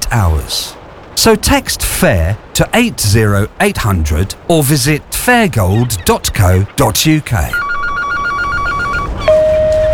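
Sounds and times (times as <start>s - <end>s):
speech: 0.1s - 7.7s
unanswered telephone ringing: 7.4s - 9.9s
long steady electronic tone: 7.5s - 9.9s.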